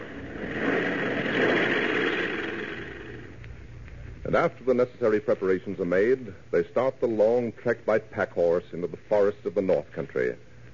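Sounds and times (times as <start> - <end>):
propeller plane engine droning in flight: 0.0 - 3.7
speech: 4.3 - 10.5.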